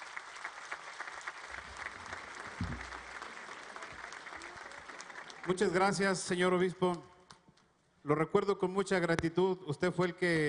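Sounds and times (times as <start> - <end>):
audience applause: 0.0 - 6.3
low thump: 2.6 - 3.0
speech: 5.5 - 7.1, 8.0 - 10.4.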